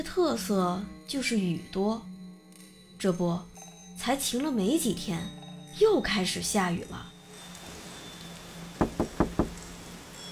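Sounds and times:
speech: 0:00.0 - 0:02.1, 0:03.0 - 0:07.1
delivery rider knocking on a door: 0:08.8 - 0:09.6.

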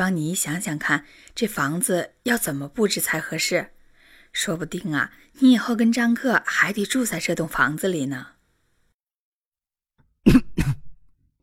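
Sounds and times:
speech: 0:00.0 - 0:08.3, 0:10.2 - 0:10.7
person clearing throat: 0:10.2 - 0:11.0.

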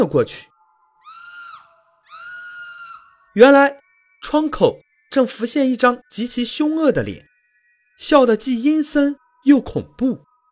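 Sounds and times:
speech: 0:00.0 - 0:00.5, 0:03.4 - 0:07.3, 0:08.0 - 0:10.3
person screaming: 0:01.0 - 0:03.2.

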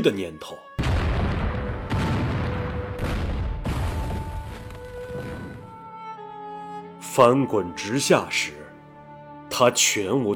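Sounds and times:
speech: 0:00.0 - 0:00.6, 0:07.2 - 0:08.6, 0:09.6 - 0:10.3
explosions in the fog: 0:00.8 - 0:05.8.

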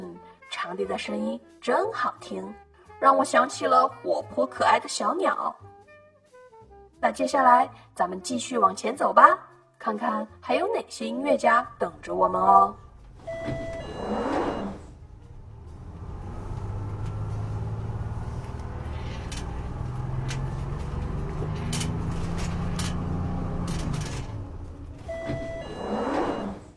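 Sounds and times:
speech: 0:00.6 - 0:05.7, 0:07.0 - 0:12.8
bus engine rumbling as it pulls in: 0:10.9 - 0:26.7
loud pneumatic hisses of bus doors opening: 0:13.1 - 0:14.9, 0:25.0 - 0:26.7
short electronic beeps: 0:13.2 - 0:15.0, 0:25.0 - 0:26.7.

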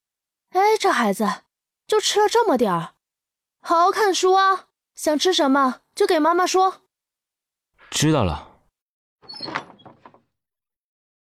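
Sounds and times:
speech: 0:00.7 - 0:03.0, 0:03.6 - 0:06.8, 0:07.9 - 0:08.5
bedroom door pulled shut: 0:09.3 - 0:10.3.

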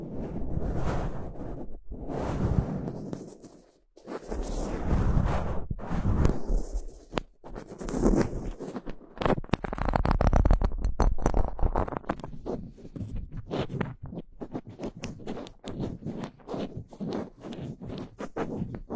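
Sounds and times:
fingers scratching and rubbing across a microphone: 0:00.0 - 0:18.9.

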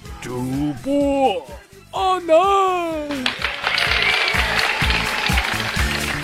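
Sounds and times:
speech: 0:00.3 - 0:03.4
audience applause: 0:03.1 - 0:06.2.

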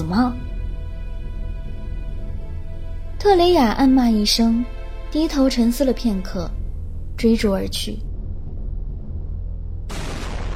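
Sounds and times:
speech: 0:00.0 - 0:00.4, 0:03.2 - 0:06.6, 0:07.2 - 0:08.1
repeated explosions: 0:09.9 - 0:10.5.

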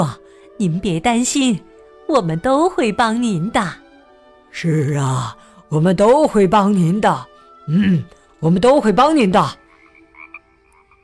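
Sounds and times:
speech: 0:00.0 - 0:03.8, 0:04.5 - 0:09.6
frog croaking: 0:07.6 - 0:11.0.

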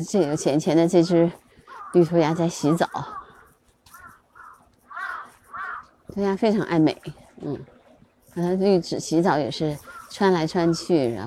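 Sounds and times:
speech: 0:00.0 - 0:03.2, 0:06.1 - 0:07.8, 0:08.4 - 0:11.2
crow cawing: 0:01.6 - 0:06.0, 0:09.7 - 0:10.9.

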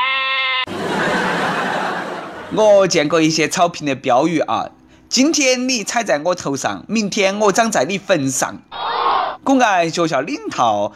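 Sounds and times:
goat bleating: 0:00.0 - 0:00.7, 0:08.7 - 0:09.4
laughter: 0:00.6 - 0:02.8
speech: 0:02.5 - 0:08.8, 0:09.4 - 0:10.9.

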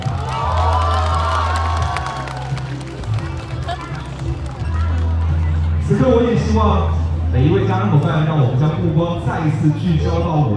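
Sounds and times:
wedding guests applauding and cheering: 0:00.0 - 0:06.0
speech: 0:06.0 - 0:10.5.

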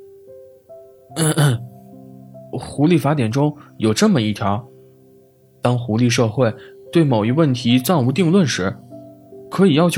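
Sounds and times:
speech: 0:01.2 - 0:01.7, 0:02.5 - 0:04.7, 0:05.6 - 0:08.8, 0:09.5 - 0:09.9
throat clearing: 0:01.2 - 0:01.7.

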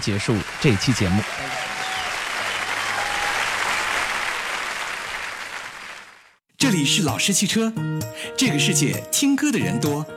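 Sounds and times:
speech: 0:00.0 - 0:01.7, 0:06.7 - 0:10.1
applause: 0:00.0 - 0:06.4.

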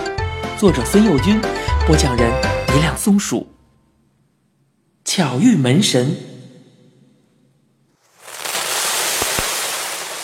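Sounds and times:
speech: 0:00.6 - 0:03.5, 0:05.0 - 0:06.3
firecrackers popping: 0:08.0 - 0:10.2.

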